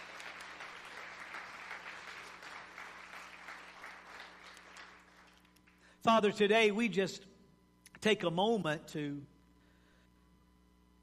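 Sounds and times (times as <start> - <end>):
audience hand clapping: 0.0 - 5.9
speech: 6.0 - 7.3, 8.0 - 9.3.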